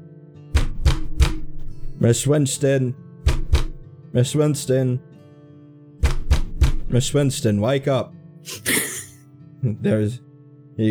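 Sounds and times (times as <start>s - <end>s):
heavy knocking on a door: 0.6s - 2.0s, 3.3s - 3.8s, 6.0s - 7.4s
speech: 2.0s - 3.0s, 4.1s - 5.1s, 6.9s - 8.8s, 9.6s - 10.8s.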